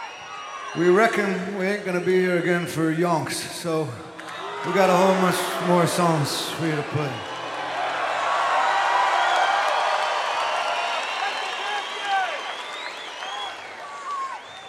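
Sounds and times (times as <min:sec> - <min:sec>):
speech: 0:00.7 - 0:07.3
audience booing: 0:04.2 - 0:14.6.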